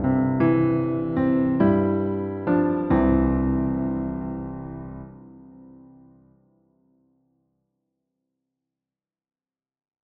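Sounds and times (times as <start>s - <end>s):
solo piano: 0.0s - 6.9s.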